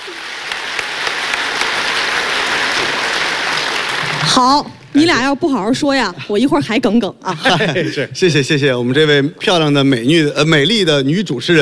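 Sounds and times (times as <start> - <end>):
audience applause: 0.0 - 4.9
speech: 4.2 - 11.5
laughter: 7.2 - 8.4.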